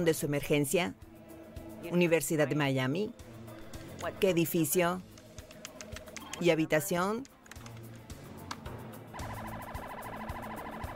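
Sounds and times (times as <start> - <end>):
speech: 0.0 - 1.1, 1.8 - 3.3, 4.0 - 5.1, 6.4 - 7.3
police patrol car emergency siren: 9.2 - 10.9.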